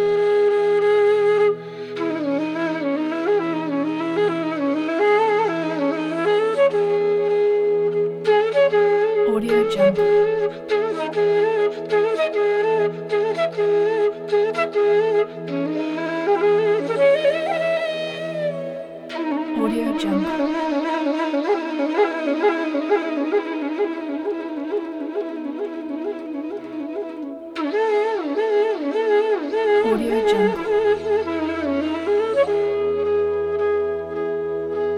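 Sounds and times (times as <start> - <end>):
Indian flute music instrumental: 0.0 - 34.9.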